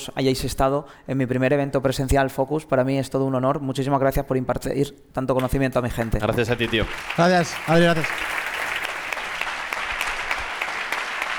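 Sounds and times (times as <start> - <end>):
speech: 0.0 - 8.5
audience applause: 6.1 - 11.3.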